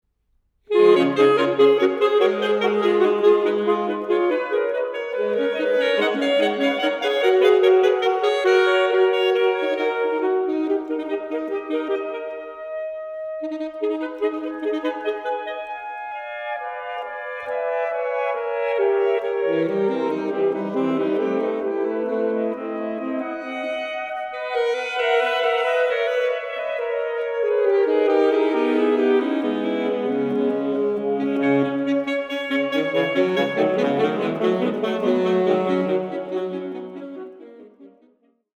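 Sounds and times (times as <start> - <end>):
saxophone: 0.7 - 38.5.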